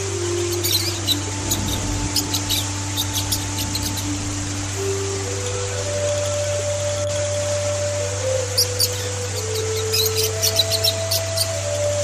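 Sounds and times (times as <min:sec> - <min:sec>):
Oriental magpie-robin singing: 0:00.2 - 0:12.0.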